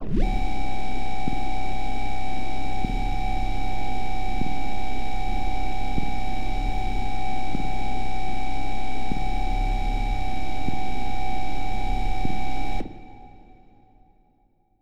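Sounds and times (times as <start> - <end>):
ambient pad: 0.0 - 13.9.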